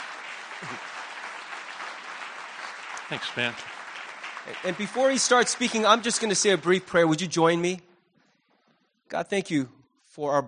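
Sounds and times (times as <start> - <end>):
audience applause: 0.0 - 7.4
speech: 0.6 - 0.9, 3.1 - 3.7, 4.4 - 7.9, 9.1 - 10.4.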